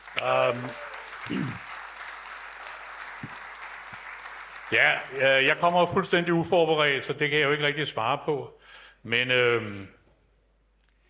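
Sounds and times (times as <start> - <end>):
audience applause: 0.0 - 6.0
speech: 0.2 - 1.7, 4.7 - 10.0.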